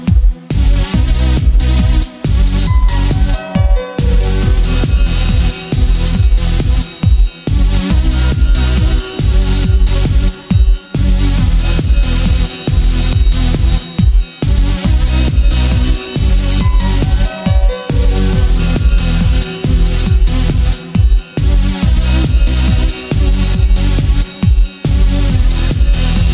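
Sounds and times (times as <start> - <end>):
turbo beat at 432 Hz: 0.0 - 26.3.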